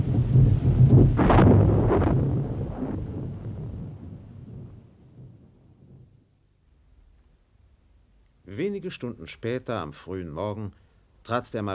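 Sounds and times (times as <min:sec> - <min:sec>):
thunder rolling in a thunderstorm: 0:00.0 - 0:06.3
speech: 0:08.8 - 0:11.7.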